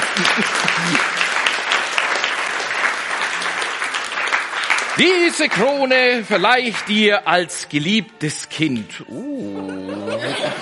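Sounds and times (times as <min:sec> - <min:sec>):
laughter: 0:00.0 - 0:01.2, 0:09.2 - 0:10.6
crowd applause: 0:00.0 - 0:07.4
speech: 0:00.2 - 0:01.2, 0:05.0 - 0:10.6.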